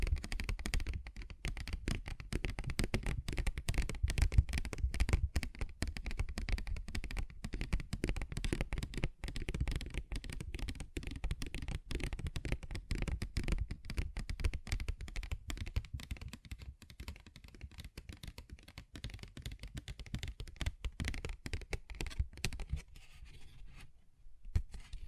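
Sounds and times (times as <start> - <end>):
fingers tapping and scratching on a paper bag: 0.0 - 22.8.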